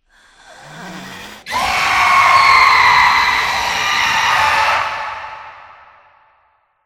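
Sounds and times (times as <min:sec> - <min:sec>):
person screaming: 0:01.5 - 0:05.5.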